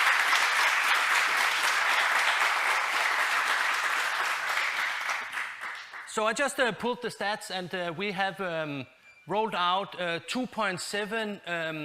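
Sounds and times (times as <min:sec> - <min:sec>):
applause: 0:00.0 - 0:06.3
speech: 0:06.2 - 0:11.8.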